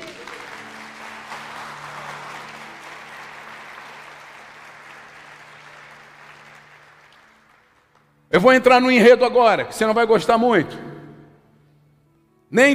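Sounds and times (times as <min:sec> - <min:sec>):
audience applause: 0:00.0 - 0:08.2
speech: 0:08.3 - 0:10.9, 0:12.5 - 0:12.7.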